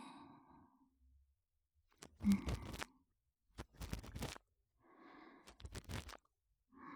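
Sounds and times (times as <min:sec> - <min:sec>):
ASMR ear cleaning on the right ear: 0:02.0 - 0:02.9, 0:03.6 - 0:04.4.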